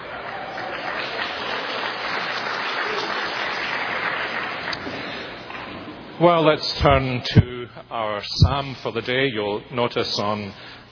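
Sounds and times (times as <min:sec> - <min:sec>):
audience applause: 0:00.0 - 0:05.5
speech: 0:06.2 - 0:10.9.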